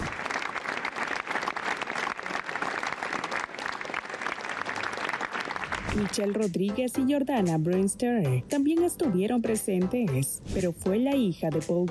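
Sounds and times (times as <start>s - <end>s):
audience ovation applause: 0.0s - 6.1s
speech: 6.0s - 11.8s.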